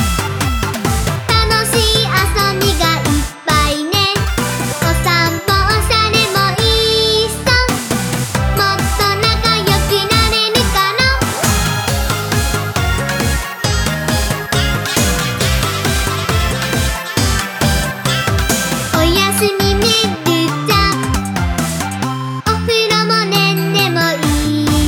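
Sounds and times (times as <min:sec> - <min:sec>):
solo dance music: 0:00.0 - 0:24.8.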